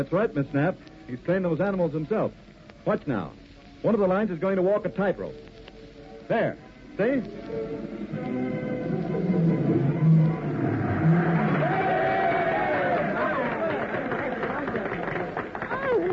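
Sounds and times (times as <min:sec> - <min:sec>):
speech: 0:00.0 - 0:05.5, 0:06.3 - 0:08.6
enthusiastic circus crowd cheering: 0:08.8 - 0:16.1.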